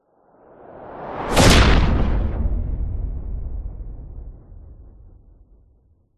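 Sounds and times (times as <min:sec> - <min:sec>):
science fiction spacecraft impact explosion: 0:01.3 - 0:05.5.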